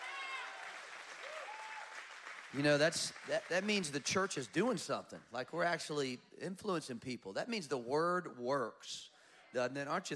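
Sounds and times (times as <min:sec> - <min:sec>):
excited cheering voices with a whoop: 0:00.0 - 0:03.8
audience clapping: 0:00.0 - 0:04.9
speech: 0:02.5 - 0:10.1.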